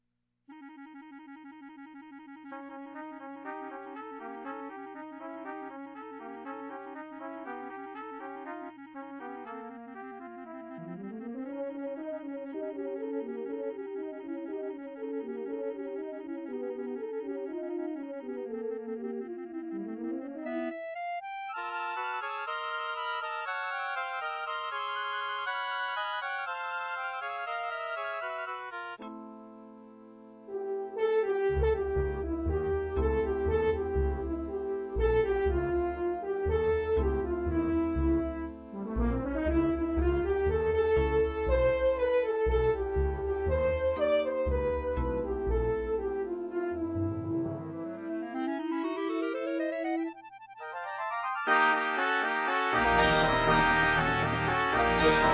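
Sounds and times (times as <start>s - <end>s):
Latino prelude music: 0.5s - 55.3s.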